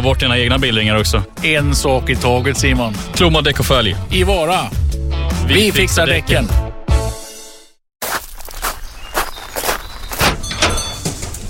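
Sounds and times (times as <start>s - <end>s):
speech: 0.0s - 4.8s, 5.4s - 6.6s
customers' footsteps in a fabric shop: 8.0s - 11.4s
knocks and shuffling clatter in a fabric shop: 9.6s - 11.4s
fabric shop door opening: 10.1s - 11.4s.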